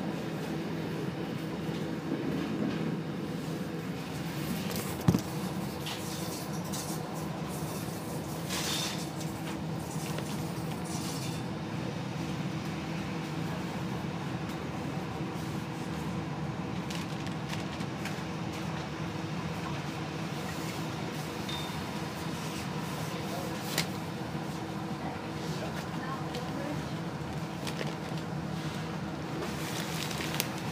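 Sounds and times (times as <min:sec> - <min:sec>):
train to Cividale: 0:00.0 - 0:30.7.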